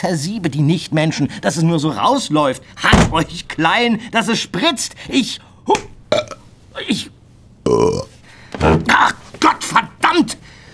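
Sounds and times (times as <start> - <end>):
speech: 0.0 - 8.0
burps: 6.1 - 6.5, 7.6 - 9.0.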